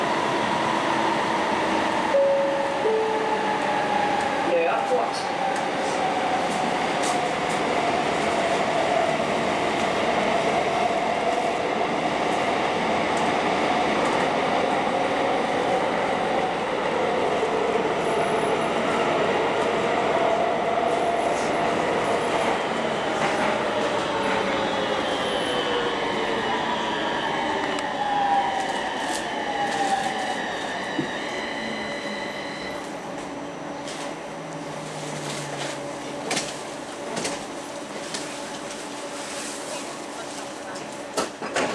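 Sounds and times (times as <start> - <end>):
Copenhagen Metro G1 train journey and arrival at Nørreport: 0.0 - 41.7.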